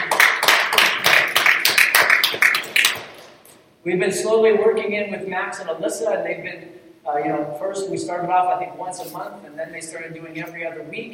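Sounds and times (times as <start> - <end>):
audience applause: 0.0 - 3.2
speech: 3.8 - 11.1.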